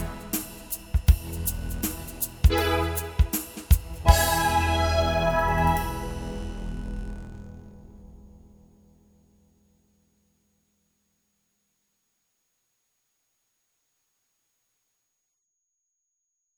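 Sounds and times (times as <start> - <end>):
instrumental music: 0.0 - 6.9.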